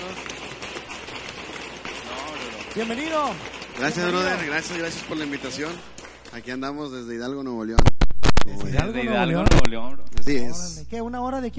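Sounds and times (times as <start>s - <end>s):
audience applauding: 0.0s - 7.4s
speech: 2.8s - 11.5s.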